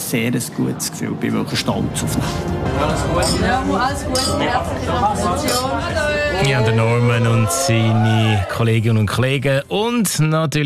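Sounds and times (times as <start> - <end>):
speech: 0.1 - 10.6
glasses clinking in a toast: 3.2 - 4.6.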